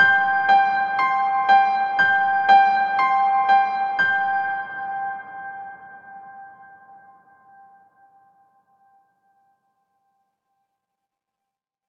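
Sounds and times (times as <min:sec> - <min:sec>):
solo piano melody: 0:00.0 - 0:07.8.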